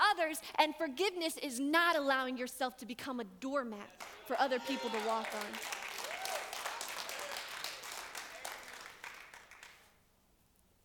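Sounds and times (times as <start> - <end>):
speech: 0.2 - 5.8
audience clapping: 3.9 - 10.0.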